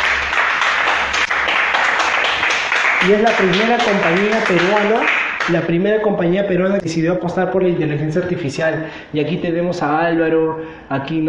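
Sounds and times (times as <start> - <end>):
audience applause: 0.0 - 5.6
speech: 3.0 - 11.2.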